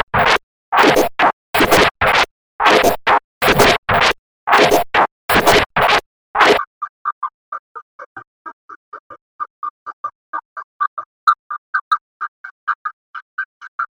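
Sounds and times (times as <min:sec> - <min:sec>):
circuit bent loops: 0:00.0 - 0:06.6.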